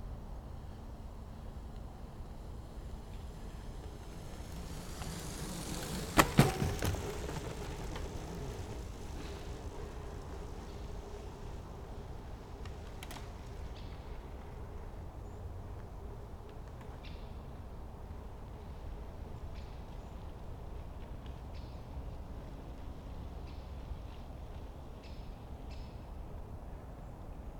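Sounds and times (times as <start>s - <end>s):
mountain bike passing in woods: 0.1s - 27.5s.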